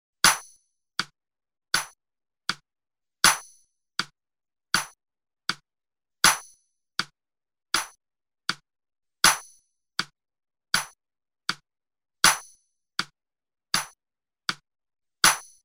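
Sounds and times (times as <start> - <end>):
rhythm exercise in quadruple time: 0.2 - 1.1, 1.8 - 2.0, 3.2 - 4.1, 4.8 - 5.0, 6.2 - 7.1, 7.8 - 8.0, 9.2 - 10.1, 10.8 - 11.6, 12.2 - 13.1, 13.8 - 14.6.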